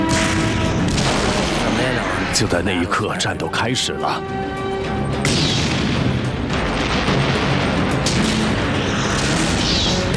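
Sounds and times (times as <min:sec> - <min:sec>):
artillery cannon fire: 0:00.1 - 0:02.3, 0:05.2 - 0:10.1
speech: 0:02.3 - 0:04.6.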